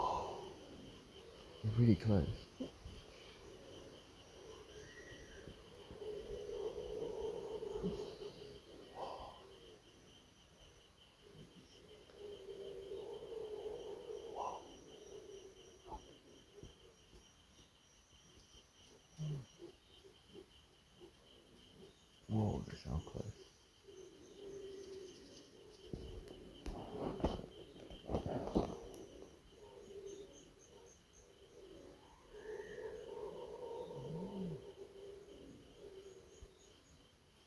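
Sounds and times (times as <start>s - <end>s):
wild chicken hooting calls: 0.0s - 1.6s, 2.6s - 9.8s, 11.3s - 16.7s, 28.2s - 36.5s
insects buzzing: 0.0s - 37.4s
speech: 1.6s - 2.5s.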